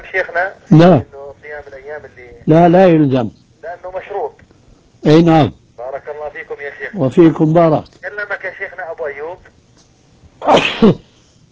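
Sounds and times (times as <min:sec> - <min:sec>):
speech: 0:00.0 - 0:04.4, 0:05.0 - 0:09.6, 0:10.4 - 0:11.1
person sneezing: 0:10.4 - 0:11.2.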